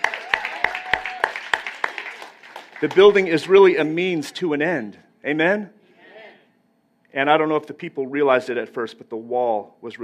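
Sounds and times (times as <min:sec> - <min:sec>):
scattered applause: 0:00.0 - 0:04.0
rhythmic audience clapping: 0:00.0 - 0:04.3
speech: 0:02.8 - 0:05.8, 0:07.1 - 0:10.0.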